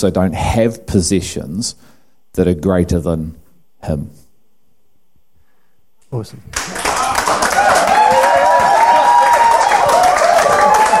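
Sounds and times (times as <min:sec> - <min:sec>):
speech: 0:00.0 - 0:04.2, 0:06.1 - 0:06.8
audience clapping: 0:06.5 - 0:10.9.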